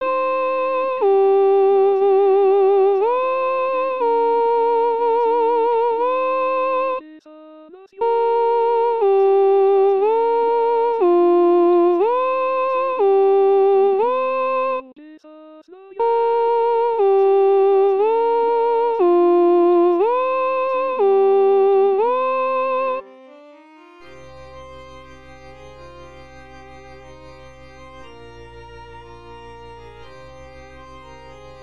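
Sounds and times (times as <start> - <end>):
soprano singing: 0.0 - 23.1.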